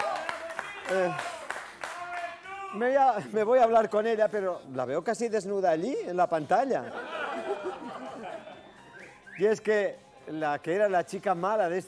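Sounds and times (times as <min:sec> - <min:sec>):
audience applause: 0:00.0 - 0:02.4
speech: 0:00.9 - 0:01.4, 0:02.7 - 0:08.0, 0:09.4 - 0:11.8
laughter: 0:06.8 - 0:09.1.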